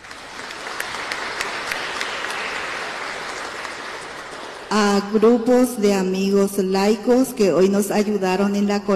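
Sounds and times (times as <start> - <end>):
audience applause: 0.0 - 4.7
speech: 4.7 - 8.9.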